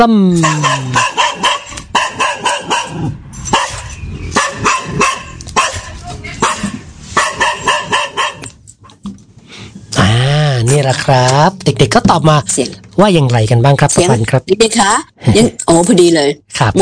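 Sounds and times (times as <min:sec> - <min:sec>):
speech: 0:00.0 - 0:01.2, 0:10.9 - 0:16.8
small dog barking: 0:00.4 - 0:08.5.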